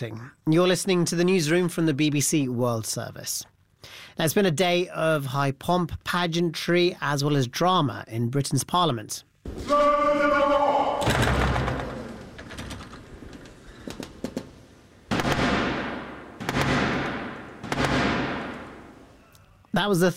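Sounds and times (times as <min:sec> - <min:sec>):
speech: 0:00.0 - 0:11.3, 0:19.8 - 0:20.1
Parliament's door slamming: 0:09.5 - 0:18.8.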